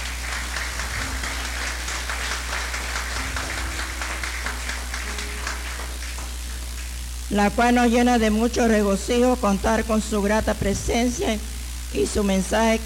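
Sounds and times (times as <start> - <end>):
audience applause: 0.0 - 7.0
speech: 7.3 - 12.8.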